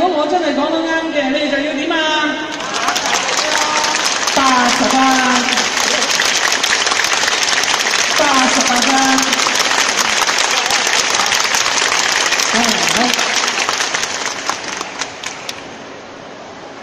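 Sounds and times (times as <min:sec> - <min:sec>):
speech: 0:00.1 - 0:01.5
audience clapping hands: 0:02.5 - 0:15.7.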